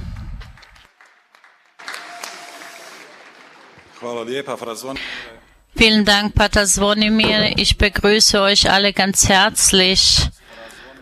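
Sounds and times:
audience applause: 0.6s - 4.3s
speech: 4.0s - 10.4s.

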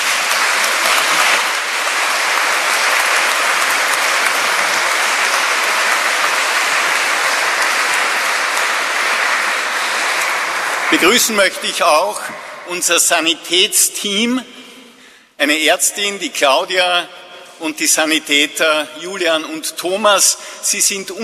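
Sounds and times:
large crowd applause: 0.0s - 12.8s
speech: 11.0s - 14.6s, 15.4s - 21.2s.

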